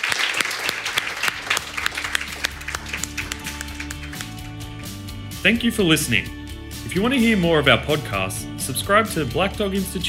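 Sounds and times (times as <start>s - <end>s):
audience applause for the panel: 0.0s - 4.6s
speech: 5.4s - 10.0s.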